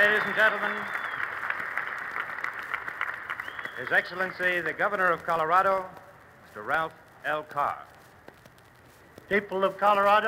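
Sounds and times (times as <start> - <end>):
speech: 0.0 - 1.0, 3.8 - 6.0, 6.6 - 7.9, 9.3 - 10.2
applause at the Colorado governor's inauguration ball in Denver: 0.0 - 4.4.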